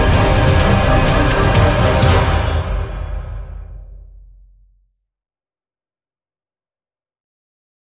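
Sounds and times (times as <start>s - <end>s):
drama suspense series music: 0.0s - 4.4s.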